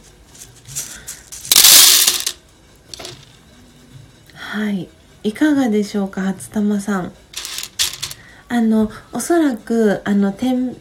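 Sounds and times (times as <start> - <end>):
freshly roasted coffee beans shaken to cool and shed chaff: 0.7 - 2.4, 3.0 - 3.2, 7.4 - 8.2
speech: 4.5 - 7.2, 8.5 - 10.7.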